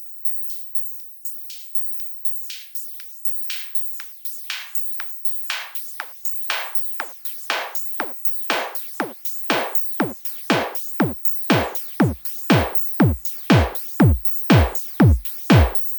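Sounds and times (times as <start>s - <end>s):
eclectic electronica drum beat: 5.7s - 15.9s.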